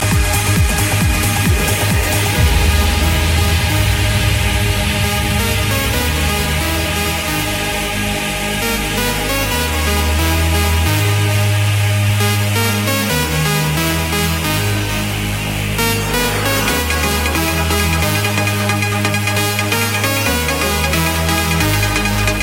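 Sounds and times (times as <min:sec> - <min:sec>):
trance music: 0:00.0 - 0:22.4.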